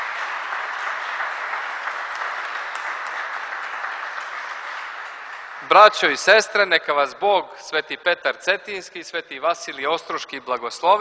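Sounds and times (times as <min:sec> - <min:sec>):
audience applause at a church gathering: 0:00.0 - 0:06.7
speech: 0:05.7 - 0:10.9.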